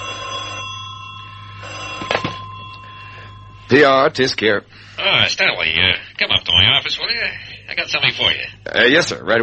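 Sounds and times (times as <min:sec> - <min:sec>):
office desk telephone ringing: 0:00.0 - 0:04.6
speech: 0:03.7 - 0:09.4.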